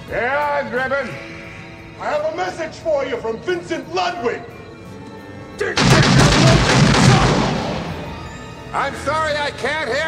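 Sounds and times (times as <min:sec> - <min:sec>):
speech: 0:00.1 - 0:01.4, 0:02.0 - 0:04.6, 0:05.6 - 0:06.6, 0:08.7 - 0:10.0
gunshot in a comedy film scene: 0:05.8 - 0:08.4.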